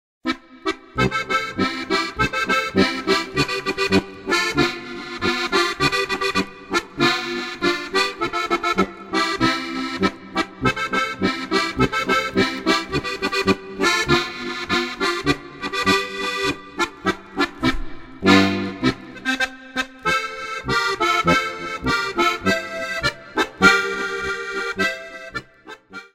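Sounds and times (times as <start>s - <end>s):
polka music: 0.3s - 26.1s.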